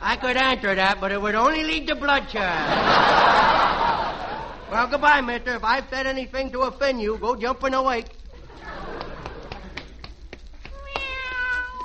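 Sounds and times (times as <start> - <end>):
hiss: 0.0 - 11.8
speech: 0.2 - 3.8, 4.7 - 8.2
laughter: 2.4 - 5.0, 8.3 - 10.1
cat meowing: 10.7 - 11.8.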